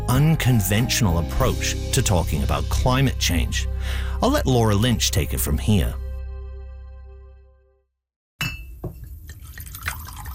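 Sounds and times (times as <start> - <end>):
speech: 0.1 - 6.0
whiskey pouring into a glass: 9.2 - 10.3.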